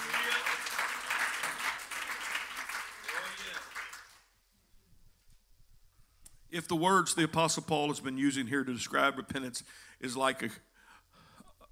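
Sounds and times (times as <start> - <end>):
audience clapping: 0.0 - 4.4
speech: 6.5 - 10.7.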